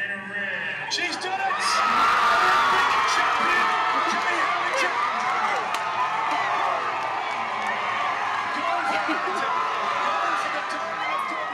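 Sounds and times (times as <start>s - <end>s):
speech: 0.9s - 2.0s
neighbours cheering after a win: 1.0s - 11.5s
excited shouts and whoops: 1.2s - 11.5s
laughter: 1.8s - 11.0s.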